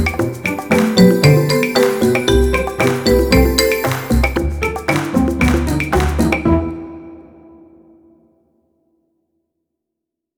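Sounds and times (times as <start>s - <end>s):
cheerful entertainment pizzicato strings: 0.0s - 7.7s.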